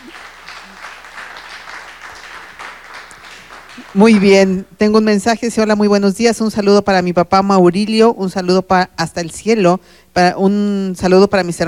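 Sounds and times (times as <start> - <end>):
steady applause from a group: 0.0 - 4.5
speech: 3.8 - 11.6.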